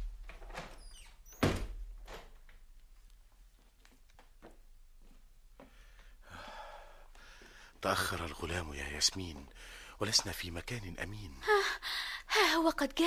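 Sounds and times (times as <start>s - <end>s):
door closing: 0.0s - 2.4s
speech: 7.8s - 13.0s.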